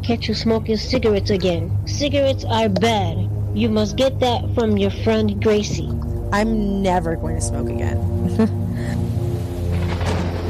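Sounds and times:
speech: 0:00.1 - 0:09.0
approaching thunderstorm with rain: 0:07.6 - 0:10.4.

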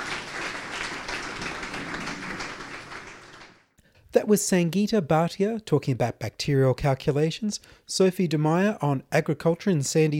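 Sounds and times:
audience applause: 0:00.0 - 0:03.7
speech: 0:04.2 - 0:10.1.

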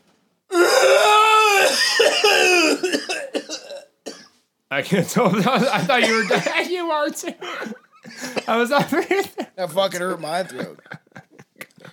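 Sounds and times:
person imitating a monster's roaring scream: 0:00.5 - 0:02.8
ragged coughs and gasps: 0:00.5 - 0:04.5, 0:05.7 - 0:06.6, 0:07.4 - 0:09.4
speech: 0:04.7 - 0:11.0
laughter: 0:05.2 - 0:11.9.

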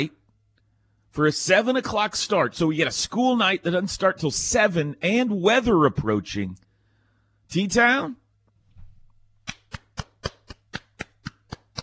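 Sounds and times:
speech: 0:01.2 - 0:06.6, 0:07.5 - 0:08.2
one person applauding: 0:09.4 - 0:11.8.

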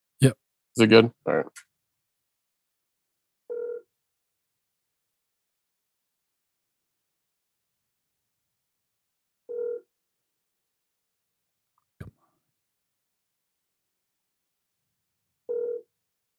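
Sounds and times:
speech: 0:00.2 - 0:01.7
outgoing phone call ringing: 0:03.5 - 0:03.9, 0:09.5 - 0:09.9, 0:15.5 - 0:15.9.

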